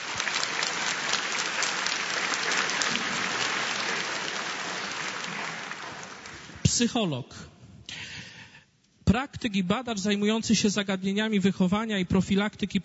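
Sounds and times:
audience applause: 0.0s - 6.6s
speech: 6.8s - 7.5s, 9.2s - 12.8s.

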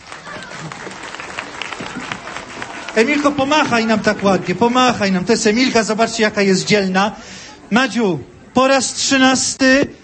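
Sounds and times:
audience applause at a children's rosary gathering: 0.0s - 5.6s
speech: 3.0s - 10.0s.

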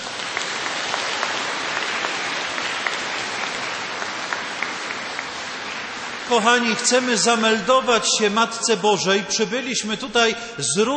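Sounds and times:
audience applause: 0.0s - 7.9s
speech: 6.3s - 10.9s.

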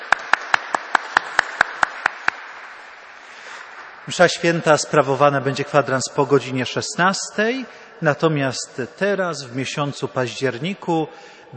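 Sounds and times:
audience applauding: 0.0s - 2.8s
speech: 4.1s - 11.5s.

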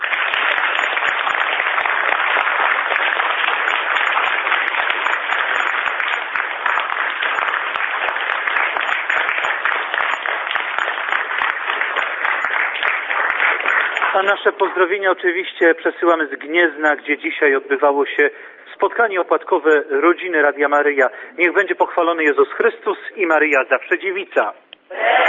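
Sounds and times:
audience applause: 0.0s - 15.2s
speech: 14.2s - 25.2s.

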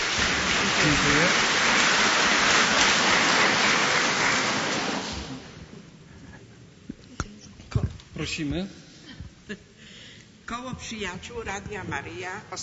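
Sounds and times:
applause: 0.0s - 5.5s
speech: 8.2s - 8.8s, 9.5s - 9.7s, 10.5s - 12.6s.

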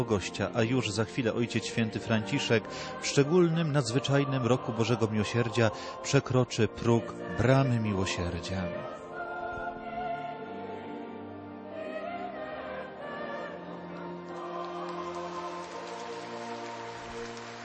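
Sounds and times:
speech: 0.0s - 9.0s
warm applause from a crowd of pilgrims: 14.2s - 17.6s.

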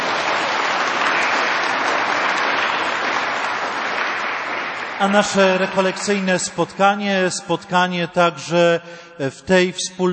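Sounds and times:
audience applause: 0.0s - 6.4s
speech: 5.0s - 10.1s.

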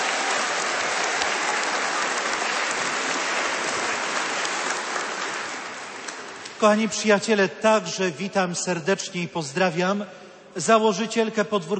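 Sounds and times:
audience applause: 0.0s - 6.6s
speech: 6.6s - 11.7s.

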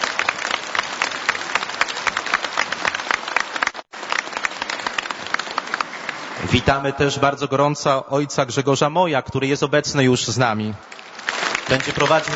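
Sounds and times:
audience applause: 0.0s - 6.6s, 10.9s - 12.3s
speech: 6.4s - 11.0s, 11.7s - 12.3s.

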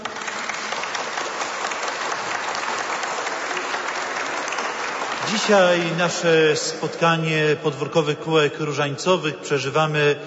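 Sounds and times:
warm applause from audience: 0.0s - 7.1s
speech: 5.3s - 10.2s.

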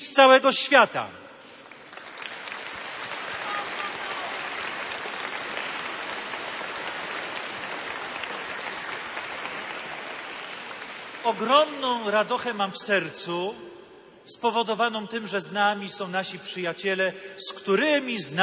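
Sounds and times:
speech: 0.2s - 1.2s, 11.2s - 18.4s
audience applause: 1.5s - 12.1s.

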